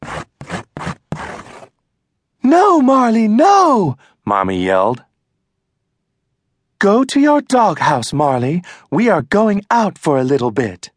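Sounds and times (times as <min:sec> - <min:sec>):
claws being sharpened, scratching: 0:00.0 - 0:01.7
speech: 0:02.8 - 0:05.1, 0:06.8 - 0:10.9.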